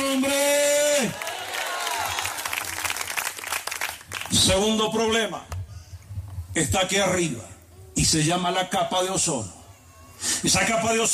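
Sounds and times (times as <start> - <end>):
audience applauding: 1.1 - 4.3
speech: 4.4 - 5.5, 6.6 - 9.6, 10.2 - 11.1.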